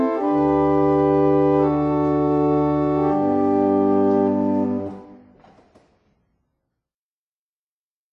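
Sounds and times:
barrel organ playing a hymn: 0:00.0 - 0:05.2.

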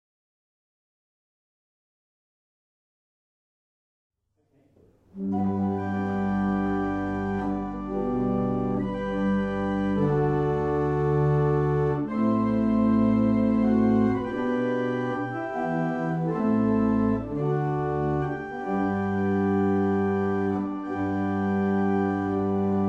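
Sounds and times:
barrel organ: 0:05.2 - 0:22.8.

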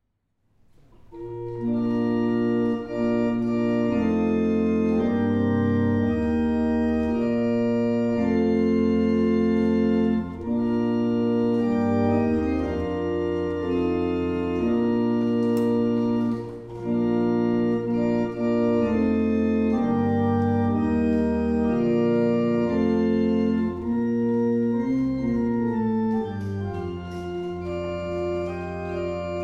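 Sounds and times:
barrel organ: 0:00.9 - 0:29.4.

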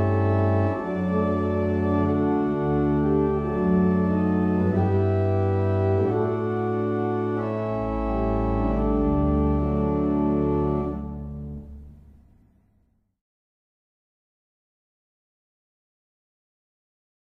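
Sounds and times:
barrel organs in Abridge: 0:00.0 - 0:12.4.

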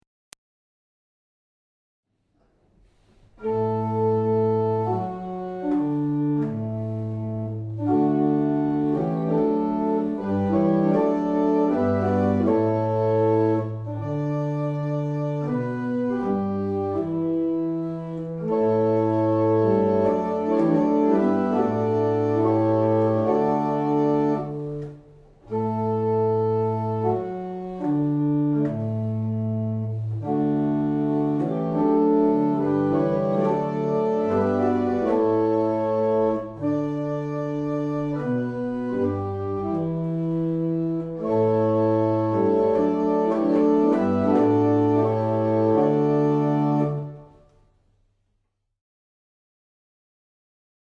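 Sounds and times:
barrel organ playing a double chant: 0:03.4 - 0:47.4.

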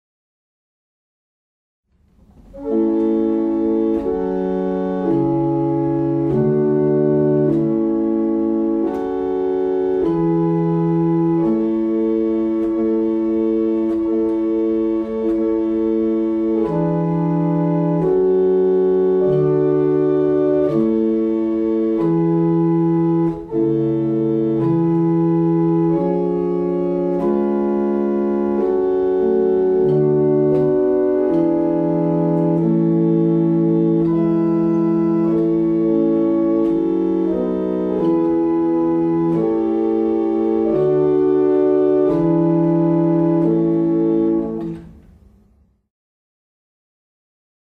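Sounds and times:
barrel organ: 0:02.0 - 0:45.2.

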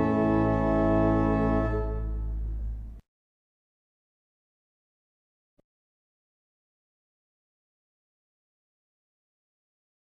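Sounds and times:
barrel organs playing in Abingdon: 0:00.0 - 0:02.6.

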